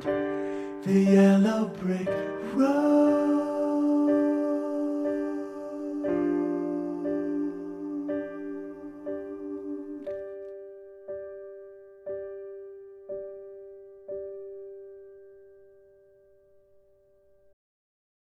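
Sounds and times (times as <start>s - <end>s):
tenor singing: 0.0s - 10.6s.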